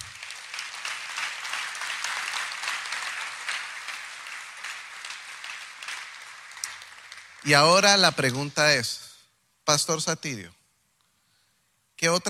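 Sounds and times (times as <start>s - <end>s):
audience applause: 0.0s - 8.4s
speech: 7.4s - 9.0s, 9.7s - 10.6s, 12.0s - 12.2s.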